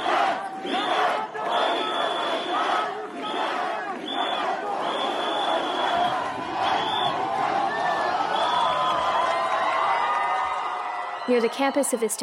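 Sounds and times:
large protest crowd roaring and cheering: 0.0s - 12.2s
shrill whistle blasts: 0.6s - 3.4s, 4.0s - 9.2s
speech: 11.3s - 12.2s.

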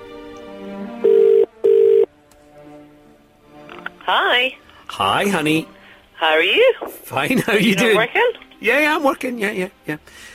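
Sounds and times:
telephone ringing: 1.0s - 2.1s
speech: 4.1s - 10.3s.

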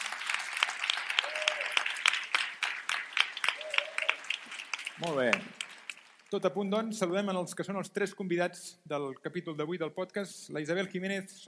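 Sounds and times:
audience applause: 0.0s - 6.3s
speech: 5.0s - 5.6s, 6.3s - 11.4s.

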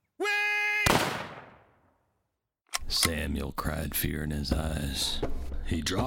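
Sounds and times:
gunshot: 0.8s - 1.7s
speech: 2.9s - 6.0s.

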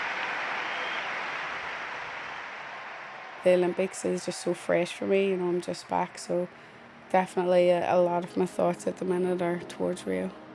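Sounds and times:
huge applause around the arena: 0.0s - 6.7s
speech: 3.4s - 10.4s.

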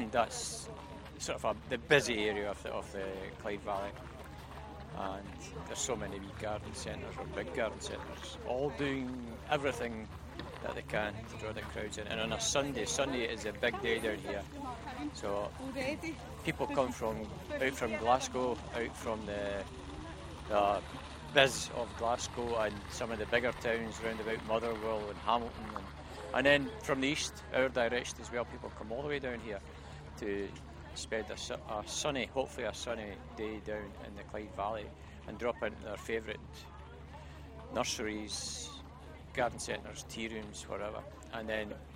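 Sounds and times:
car boot sale ambience in the Clyde valley: 0.0s - 41.9s.

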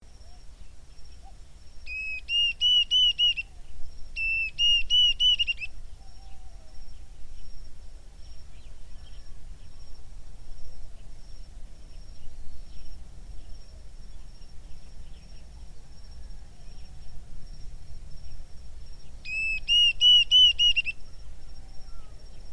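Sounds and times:
cuckoo calling: 0.2s - 7.4s, 19.2s - 22.4s.

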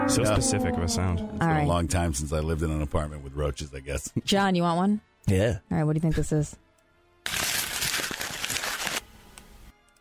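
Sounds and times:
speech: 0.1s - 6.6s
paper crumpling imitating a rocket launch: 7.3s - 9.5s.

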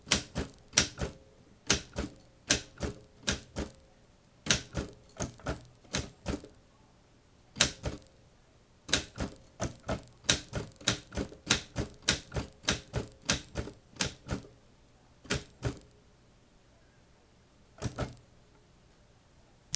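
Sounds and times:
keyboard typing: 0.0s - 3.8s, 4.5s - 6.6s, 7.6s - 8.2s, 8.9s - 14.5s, 15.2s - 16.0s.

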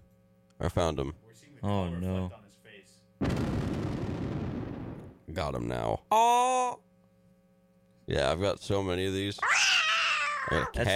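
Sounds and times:
speech: 0.6s - 2.5s, 5.3s - 6.9s, 8.1s - 9.8s, 10.5s - 10.9s
video game explosion: 3.2s - 5.2s.

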